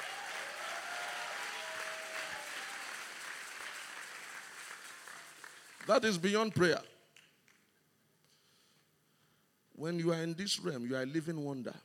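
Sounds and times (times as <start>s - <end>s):
audience clapping: 0.0s - 7.7s
speech: 5.8s - 6.9s, 9.8s - 11.8s.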